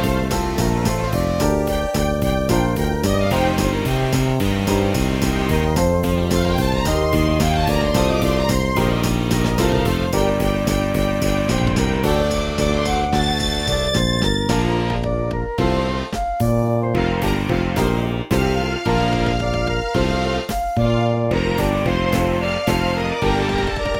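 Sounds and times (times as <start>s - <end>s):
Steinway piano: 0.0s - 23.9s
flute: 0.0s - 23.9s
fretless bass: 0.0s - 23.9s.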